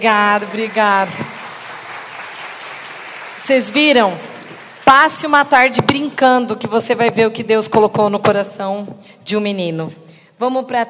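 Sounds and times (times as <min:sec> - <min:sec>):
speech: 0:00.0 - 0:01.4, 0:03.5 - 0:04.3, 0:04.9 - 0:10.8
audience applause: 0:00.0 - 0:05.1.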